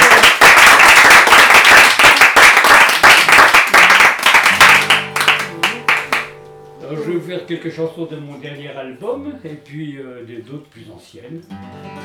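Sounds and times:
concert audience applauding a performer leaving the stage: 0.0s - 6.4s
speech: 7.4s - 12.0s.

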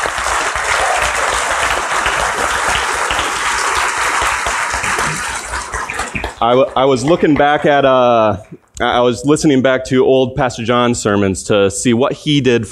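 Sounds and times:
audience applause: 0.0s - 8.4s
speech: 6.4s - 12.6s.

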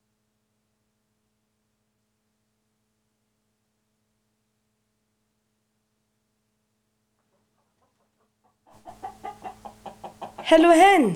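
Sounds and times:
hens clucking: 7.2s - 11.1s
bird: 8.7s - 10.6s
speech: 10.5s - 11.1s.

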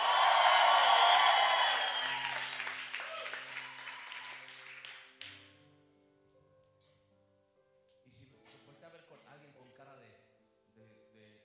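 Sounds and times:
audience shouting and cheering for joy: 0.0s - 4.5s.

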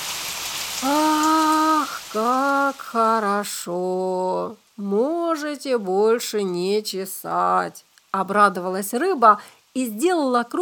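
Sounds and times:
warm rain falling: 0.0s - 10.6s
speech: 2.1s - 10.6s.

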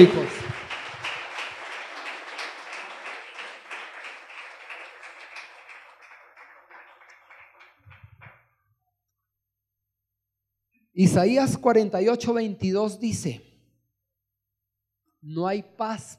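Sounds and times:
speech: 0.0s - 0.4s, 11.0s - 13.5s, 15.2s - 16.1s
church congregation applauding the Lord during a sermon: 0.0s - 8.7s.

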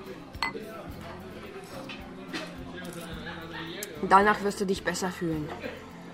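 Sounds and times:
glasses clinking in a toast: 0.4s - 0.7s
speech: 4.0s - 5.9s.

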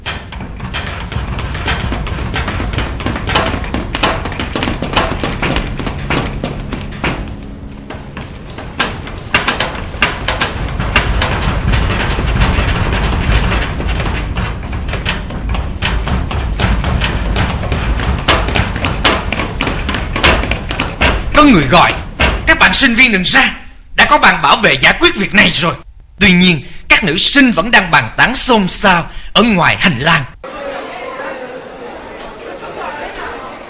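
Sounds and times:
footsteps running down stairs: 0.0s - 25.5s
speech: 21.4s - 22.0s, 22.7s - 30.3s.

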